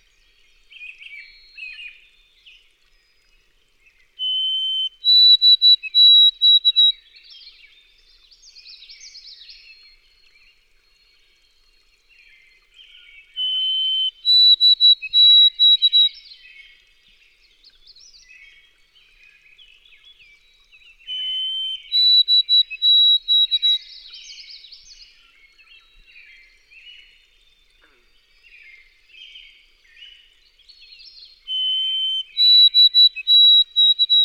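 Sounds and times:
White-throated Sparrow birdsong: 0:04.2 - 0:10.4, 0:12.9 - 0:16.5, 0:17.9 - 0:34.2.

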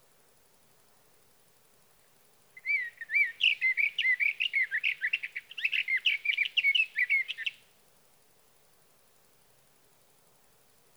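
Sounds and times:
sage thrasher song: 0:02.6 - 0:07.6.

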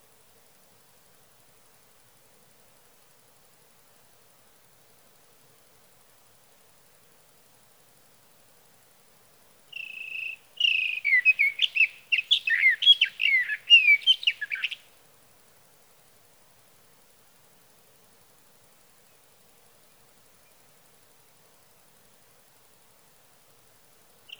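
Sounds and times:
sage thrasher song: 0:09.8 - 0:14.8.

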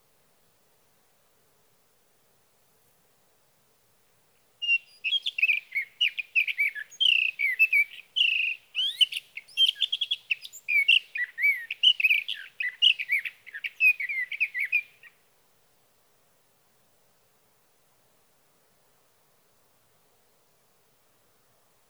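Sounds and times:
sage thrasher singing a rambling warble: 0:04.6 - 0:15.2.

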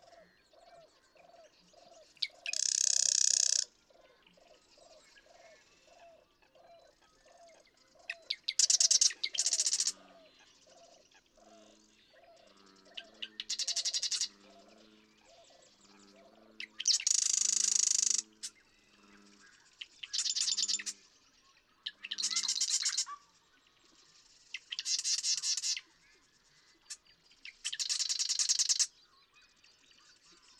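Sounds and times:
Marsh Wren song buzzy rattles: 0:02.3 - 0:03.7, 0:08.2 - 0:10.1, 0:12.5 - 0:14.4, 0:16.8 - 0:20.9, 0:22.2 - 0:23.1, 0:24.0 - 0:25.8, 0:27.5 - 0:28.9.

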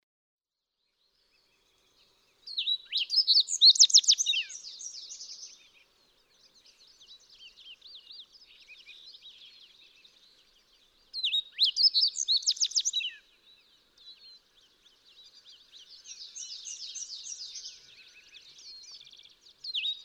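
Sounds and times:
fox sparrow whistled song: 0:01.0 - 0:20.0.

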